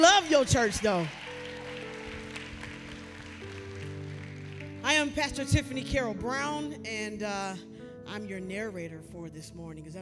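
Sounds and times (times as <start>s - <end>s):
speech: 0.0s - 1.2s, 4.8s - 10.0s
audience clapping: 0.0s - 5.0s
organ or keyboard chords: 0.0s - 7.2s.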